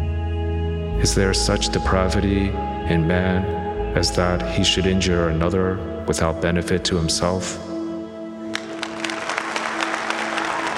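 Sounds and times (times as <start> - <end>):
speech: 1.0 - 7.7
audience applause: 8.5 - 10.7.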